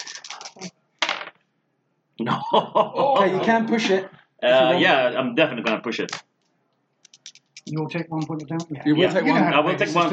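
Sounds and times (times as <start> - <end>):
dice being rolled: 0.0 - 1.4
laughter: 2.2 - 5.0, 8.9 - 10.1
speech: 2.2 - 6.2, 7.7 - 10.1.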